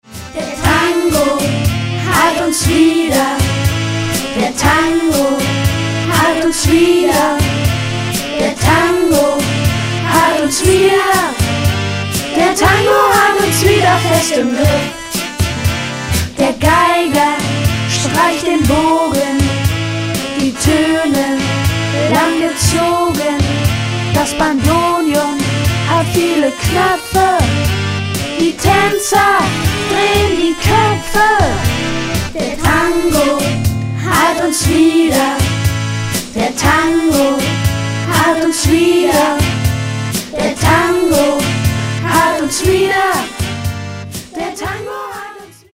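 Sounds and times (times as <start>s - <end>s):
tango music: 0.0s - 44.8s.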